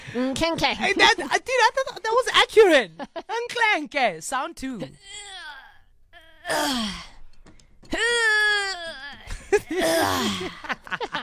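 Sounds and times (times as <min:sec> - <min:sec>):
speech: 0:00.1 - 0:05.4, 0:06.5 - 0:07.1, 0:07.9 - 0:08.4, 0:09.6 - 0:11.2
person imitating a weak person weightlifting with groans: 0:05.0 - 0:07.2, 0:08.0 - 0:10.7.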